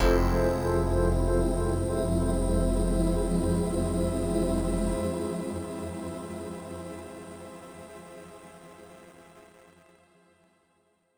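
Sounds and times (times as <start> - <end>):
intro drone: 0.0 - 6.1.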